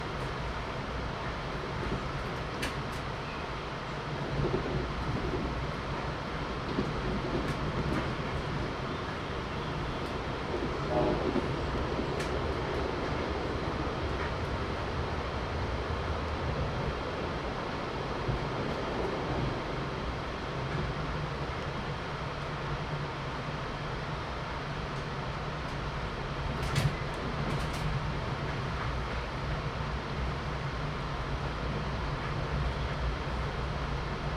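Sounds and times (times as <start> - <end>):
empty Metro North passenger train ride interior: 0.0 - 34.3.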